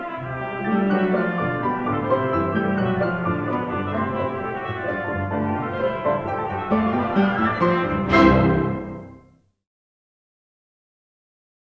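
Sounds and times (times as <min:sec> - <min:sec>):
polka music: 0:00.0 - 0:09.3.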